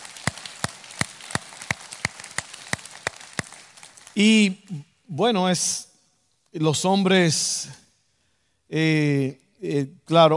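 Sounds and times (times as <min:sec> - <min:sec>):
audience applause: 0:00.0 - 0:04.2
speech: 0:04.2 - 0:05.9, 0:06.5 - 0:07.8, 0:08.7 - 0:10.3.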